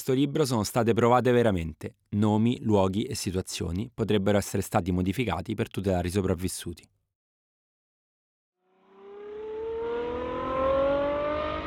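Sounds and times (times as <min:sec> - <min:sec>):
speech: 0:00.0 - 0:07.0
Ferrari 812 GTS car engine revving: 0:08.8 - 0:11.6.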